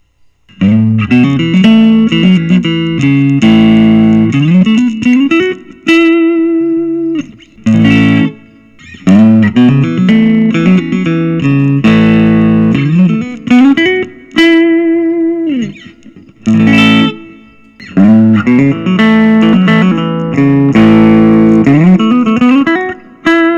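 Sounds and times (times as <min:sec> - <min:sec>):
Nik Huber Krautster II Gold Top electric guitar: 0:00.5 - 0:23.5.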